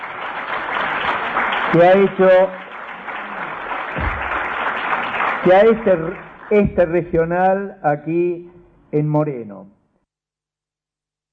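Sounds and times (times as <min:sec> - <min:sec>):
applause at a gathering in Moreno, Buenos Aires province: 0:00.0 - 0:07.6
speech: 0:01.7 - 0:02.6, 0:05.4 - 0:09.8.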